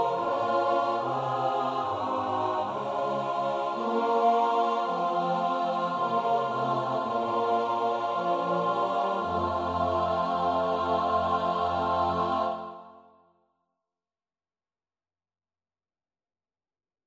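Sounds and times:
four-part SATB choir singing a chorale: 0.0 - 13.2.

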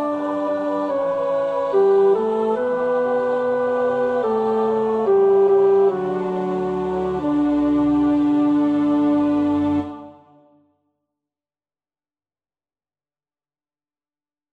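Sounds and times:
choir tenors singing: 0.0 - 10.6.

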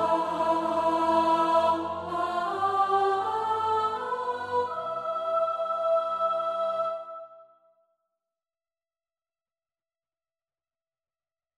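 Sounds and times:
SATB choir part practice: 0.0 - 7.6.

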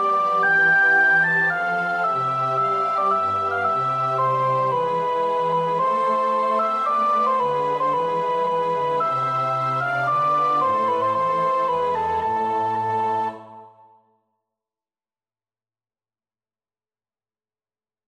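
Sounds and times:
soprano practising a choir part: 0.0 - 14.0.

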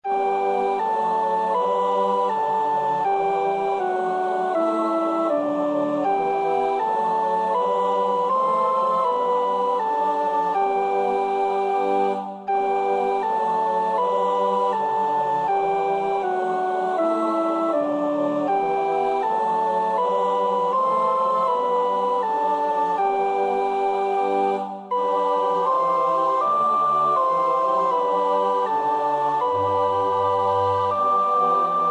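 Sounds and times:
soprano singing: 0.0 - 31.8.

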